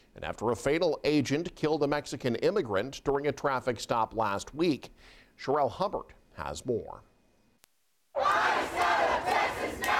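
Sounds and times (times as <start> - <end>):
speech: 0.2 - 7.1
protest crowd shouting: 8.2 - 9.9.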